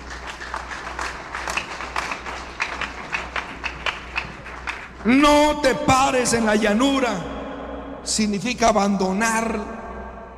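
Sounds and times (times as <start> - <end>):
audience applause: 0.0 - 5.0
speech: 5.0 - 7.3, 8.1 - 9.8.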